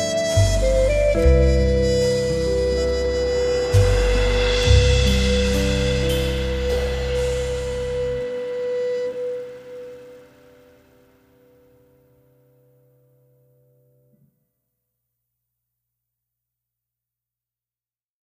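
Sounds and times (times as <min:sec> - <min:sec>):
blue ballad: 0:00.0 - 0:11.6.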